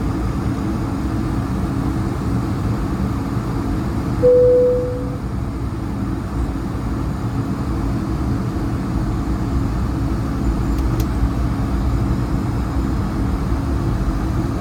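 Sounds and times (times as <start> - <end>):
airliner engine roar in the cabin: 0.0 - 14.6
short chime tone: 4.2 - 5.2.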